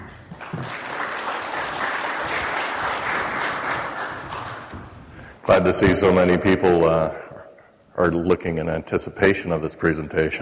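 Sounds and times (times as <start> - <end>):
mining technology conference audience applause welcoming a speaker: 0.0 - 4.9
speech: 5.5 - 7.2, 8.0 - 10.4.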